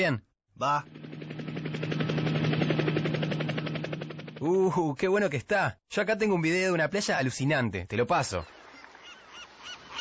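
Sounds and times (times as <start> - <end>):
speech: 0.0 - 1.0, 4.4 - 8.6
helicopter ringtone with rotor chops and engine drone: 0.6 - 4.8.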